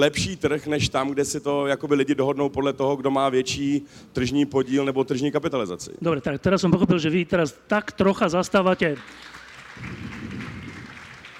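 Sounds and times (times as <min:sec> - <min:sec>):
speech: 0:00.0 - 0:10.1
audience applauding a Czech participant during a debate: 0:08.7 - 0:11.3.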